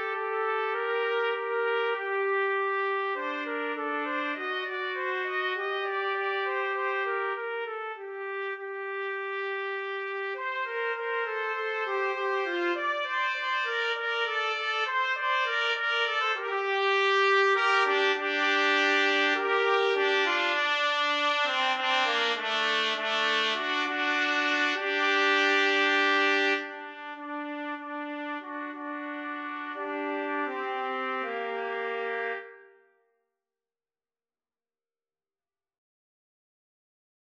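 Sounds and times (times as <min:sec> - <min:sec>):
trumpet: 0:00.0 - 0:33.0.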